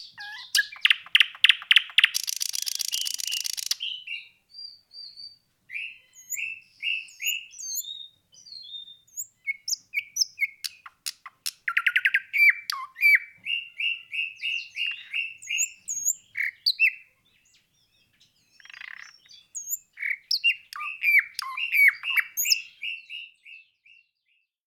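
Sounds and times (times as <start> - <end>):
Luscinia birdsong: 0.0 - 24.6.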